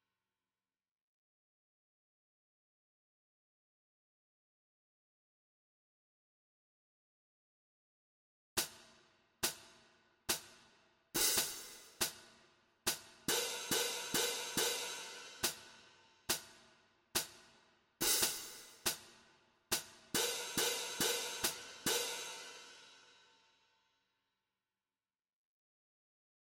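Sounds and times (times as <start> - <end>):
cymbals in a jig rhythm: 11.2 - 12.3, 12.9 - 16.6, 18.0 - 23.1.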